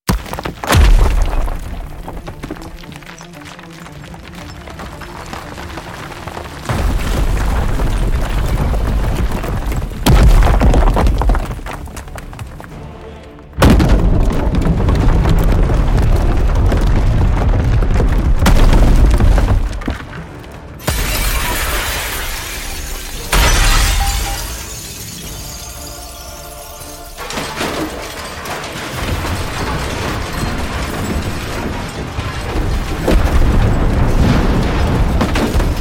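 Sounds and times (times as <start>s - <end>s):
debris: 0.0s - 12.9s, 13.5s - 35.7s.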